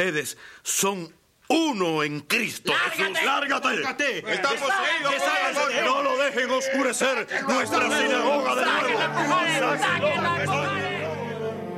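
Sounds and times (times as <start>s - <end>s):
speech: 0.0s - 11.0s
crowd of gentiles shouting with joy: 4.2s - 11.6s.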